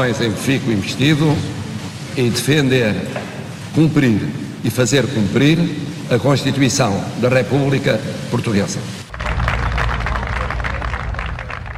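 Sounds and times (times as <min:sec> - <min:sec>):
speech: 0:00.0 - 0:01.6, 0:02.2 - 0:09.0
crowd ovation with applause: 0:09.1 - 0:11.7.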